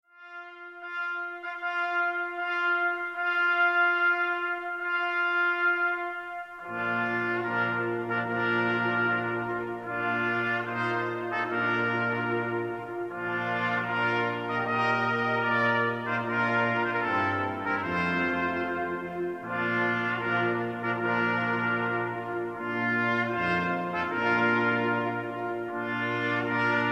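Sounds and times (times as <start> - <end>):
brass playing a wedding march: 0.1 - 26.9.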